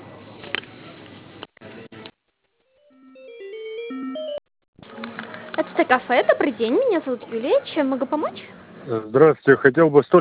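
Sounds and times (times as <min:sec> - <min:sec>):
electronic phone-line tones while a call is transferred: 0:02.8 - 0:04.4
speech: 0:05.6 - 0:10.2.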